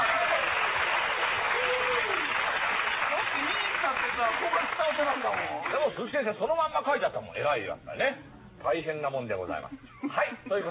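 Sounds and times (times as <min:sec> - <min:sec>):
applause: 0:00.0 - 0:06.0
speech: 0:04.4 - 0:10.6.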